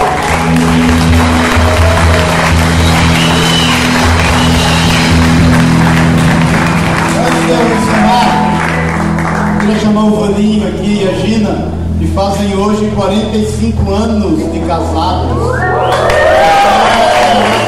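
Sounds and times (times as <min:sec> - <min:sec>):
audience applause: 0:00.0 - 0:10.0, 0:15.6 - 0:17.6
speech: 0:11.2 - 0:16.8.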